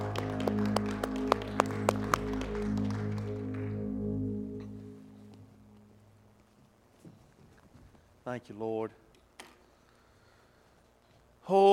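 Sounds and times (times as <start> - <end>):
audience clapping hands: 0.0 - 4.9
sustained organ-like music: 0.0 - 6.3
speech: 8.3 - 9.0, 11.5 - 11.7.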